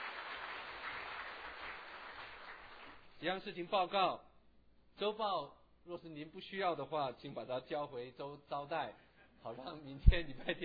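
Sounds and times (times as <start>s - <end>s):
audience applause: 0.0s - 3.1s
speech: 3.2s - 4.3s, 5.0s - 10.6s.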